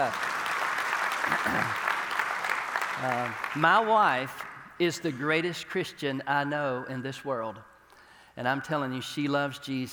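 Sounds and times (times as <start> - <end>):
speech: 0.0 - 0.3, 1.3 - 1.9, 3.0 - 7.7, 8.4 - 9.9
audience clapping: 0.0 - 4.8.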